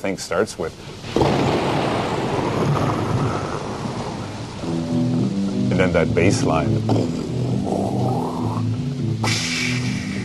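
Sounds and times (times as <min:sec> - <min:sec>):
speech: 0:00.0 - 0:01.6, 0:05.8 - 0:08.2
rain: 0:00.0 - 0:10.2
thunder: 0:01.0 - 0:05.3.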